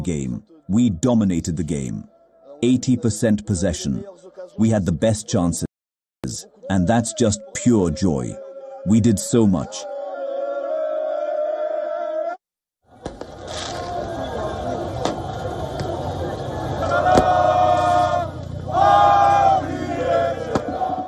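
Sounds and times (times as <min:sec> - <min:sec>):
PSG supporters shouting and chanting: 0:00.0 - 0:03.1, 0:06.2 - 0:21.0
speech: 0:00.0 - 0:05.7, 0:06.3 - 0:09.9
PSG football supporters roaring on the Champs-Élysées in Paris: 0:06.6 - 0:21.0.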